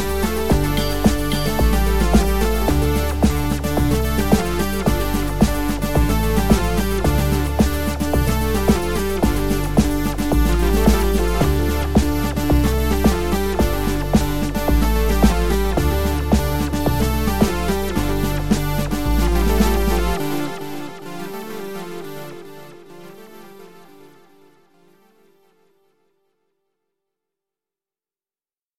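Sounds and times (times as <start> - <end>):
old school club track: 0.0 - 21.5.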